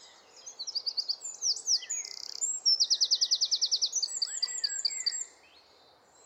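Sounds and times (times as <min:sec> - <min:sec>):
Eurasian wren Troglodytes troglodytes singing: 0:00.5 - 0:05.3.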